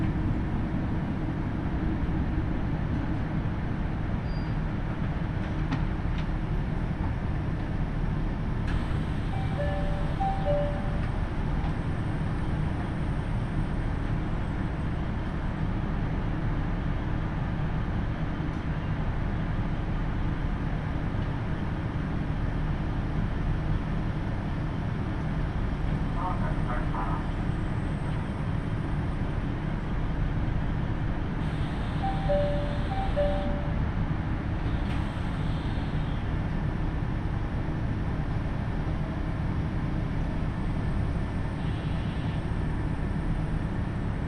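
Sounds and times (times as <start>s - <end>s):
KiHa 75 diesel train engine and wheels rumbling on the Takayama Line: 0.0s - 44.2s
two-tone chimes: 9.4s - 11.0s, 32.0s - 33.8s.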